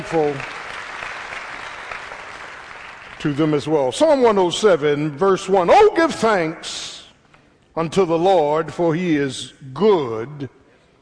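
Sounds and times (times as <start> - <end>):
audience applauding the choir: 0.0 - 3.3
speech: 0.1 - 0.5, 3.2 - 6.8, 7.8 - 10.6.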